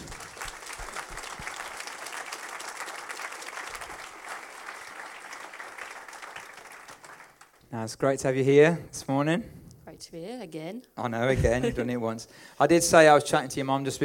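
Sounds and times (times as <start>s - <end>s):
church audience applauding to welcome a speaker: 0.0s - 7.6s
speech: 7.7s - 14.0s.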